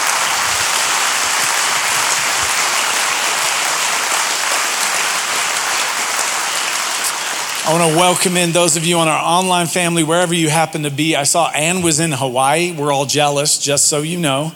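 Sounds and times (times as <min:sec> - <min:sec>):
audience applause: 0:00.0 - 0:10.0
speech: 0:07.7 - 0:14.5.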